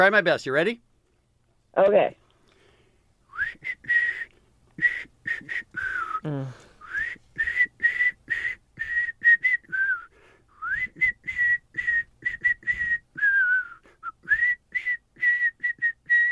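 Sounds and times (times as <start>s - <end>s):
speech: 0.0s - 0.9s, 1.8s - 2.2s, 5.0s - 6.6s
person whistling a song melody: 3.3s - 16.3s.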